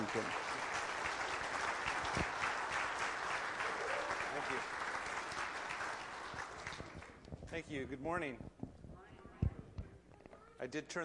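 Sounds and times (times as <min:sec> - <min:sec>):
audience applause greeting a speaker: 0:00.0 - 0:07.2
speech: 0:00.1 - 0:00.4, 0:07.6 - 0:08.5, 0:10.6 - 0:11.0.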